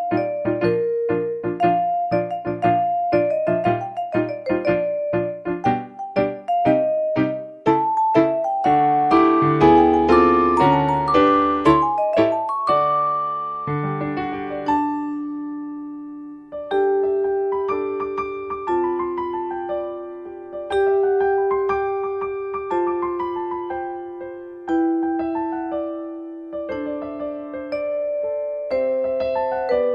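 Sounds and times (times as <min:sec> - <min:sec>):
playful flute melody: 0:00.0 - 0:17.8
accompaniment music: 0:00.0 - 0:29.9.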